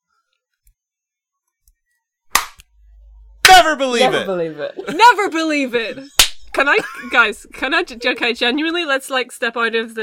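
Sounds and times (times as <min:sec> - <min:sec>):
group clapping in unison: 0:02.3 - 0:02.6, 0:06.2 - 0:06.4
speech: 0:03.6 - 0:10.0.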